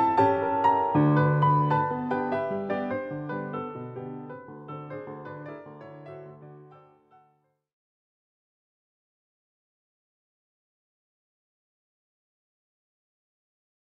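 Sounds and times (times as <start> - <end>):
piano piece in E minor allegro ma non troppo: 0.0 - 7.4.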